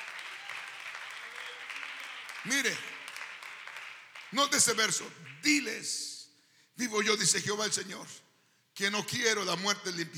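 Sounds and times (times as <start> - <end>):
applause: 0.0 - 5.7
speech: 2.4 - 3.0, 4.3 - 6.1, 6.8 - 10.1.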